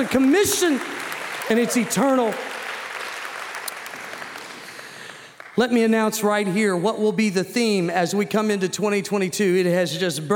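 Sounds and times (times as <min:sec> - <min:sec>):
speech: 0:00.0 - 0:02.6, 0:05.6 - 0:10.3
audience clapping: 0:00.0 - 0:06.4.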